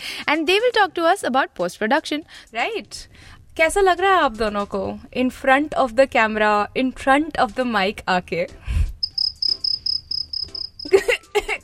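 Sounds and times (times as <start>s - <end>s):
speech: 0.3s - 8.9s
crickets chirping: 9.0s - 10.9s.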